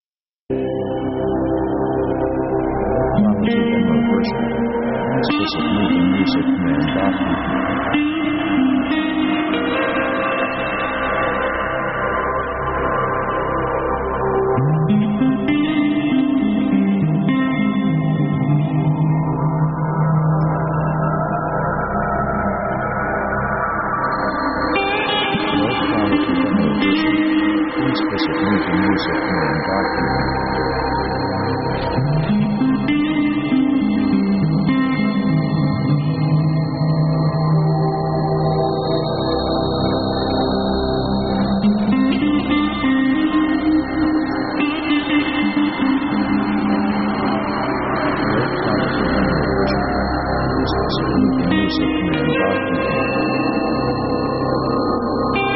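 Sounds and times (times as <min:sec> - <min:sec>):
guitar: 0:00.5 - 0:55.5.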